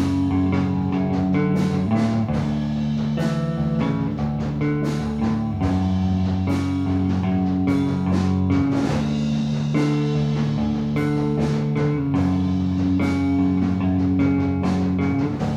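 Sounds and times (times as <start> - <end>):
bass recorded mono: 0.0 - 15.5.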